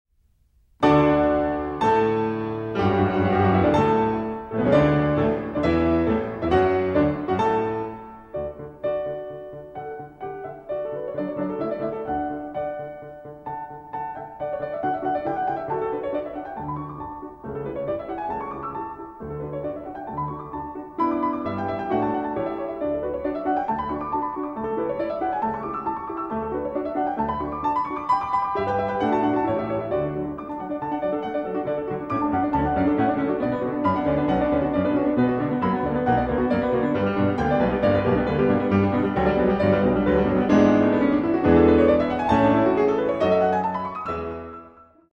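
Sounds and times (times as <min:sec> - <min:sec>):
sonata for two pianos: 0:00.8 - 0:45.1.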